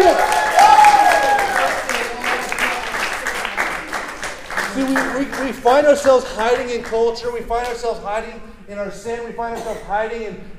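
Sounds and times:
audience hand clapping: 0.0 - 8.0
speech: 5.6 - 10.5.

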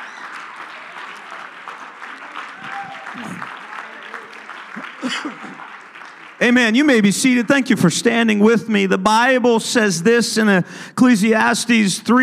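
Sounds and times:
audience clapping hands: 0.0 - 7.9
scattered voices and murmuring: 2.0 - 5.7
speech: 6.4 - 12.2.

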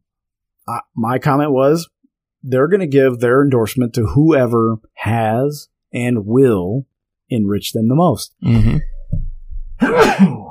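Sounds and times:
speech: 0.7 - 8.9, 9.8 - 10.4
sneeze: 9.8 - 10.4.

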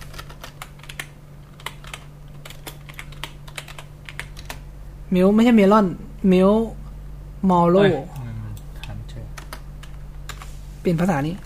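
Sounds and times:
computer keyboard typing while searching: 0.0 - 4.6, 8.8 - 10.4
speech: 5.1 - 6.8, 7.4 - 8.1, 10.8 - 11.4.

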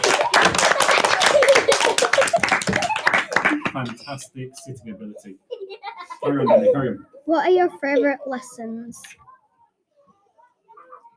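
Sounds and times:
children clapping: 0.0 - 4.2
laughter: 0.0 - 4.2, 5.0 - 7.0
speech: 3.8 - 5.5, 6.2 - 9.2.

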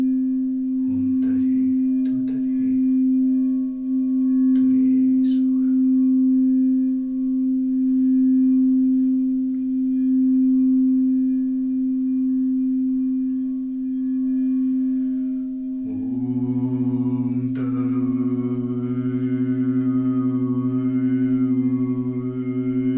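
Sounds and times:
singing bowls ringing: 0.0 - 22.9.

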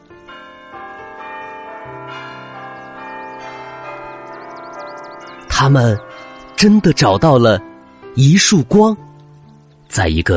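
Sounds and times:
clock striking midnight with deep bell strokes: 0.0 - 7.6
speech: 1.9 - 2.4, 5.6 - 9.0, 9.9 - 10.3.

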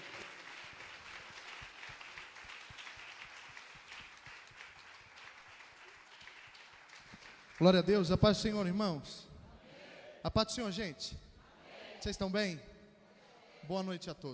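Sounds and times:
audience applause: 0.0 - 7.9
speech: 7.6 - 9.3, 10.2 - 11.2, 12.0 - 12.7, 13.7 - 14.3.

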